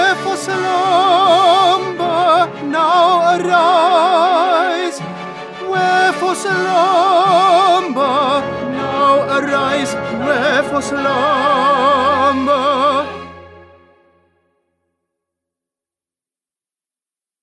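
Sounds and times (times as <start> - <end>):
tenor singing: 0.0 - 13.6.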